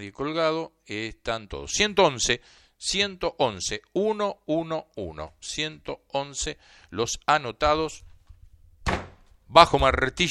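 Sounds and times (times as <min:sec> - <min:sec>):
speech: 0:00.0 - 0:08.1, 0:08.8 - 0:10.2
wooden gavel strike: 0:08.8 - 0:09.3.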